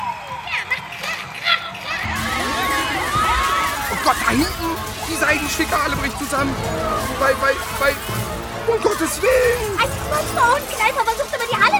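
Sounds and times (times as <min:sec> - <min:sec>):
crowd cheering and shouting, many sounding like children: 0:00.0 - 0:11.7
speech: 0:04.3 - 0:04.6, 0:05.3 - 0:11.7.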